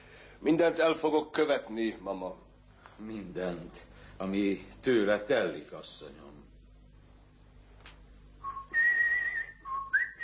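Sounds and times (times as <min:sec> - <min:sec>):
speech: 0:00.4 - 0:06.5
person whistling a short tune: 0:08.4 - 0:10.2.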